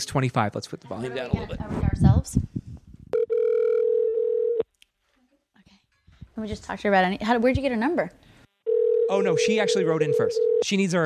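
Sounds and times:
speech: 0.0 - 2.6, 6.4 - 8.2, 9.1 - 11.0
telephone tones as a call is placed: 3.1 - 4.6, 8.7 - 10.6.

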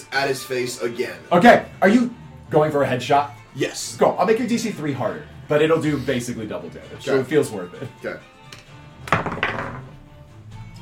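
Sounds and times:
speech: 0.1 - 8.3
dice roll in a tabletop role-playing game: 9.1 - 9.9.

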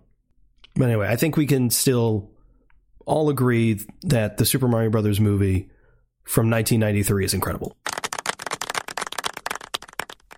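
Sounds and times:
speech: 0.8 - 2.4, 3.1 - 7.8
audience clapping: 7.9 - 10.3.

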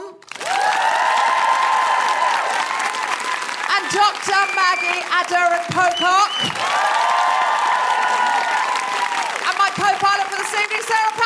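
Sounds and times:
audience clapping for a guest at a live show: 0.1 - 11.2
high cheers and whoops: 0.3 - 5.1, 5.8 - 9.5
speech: 3.9 - 7.1, 9.8 - 11.2.

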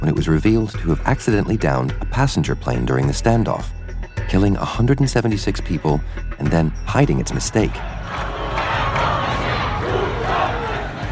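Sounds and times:
speech: 0.0 - 8.4
street protest crowd shouting and chanting: 7.6 - 11.0.

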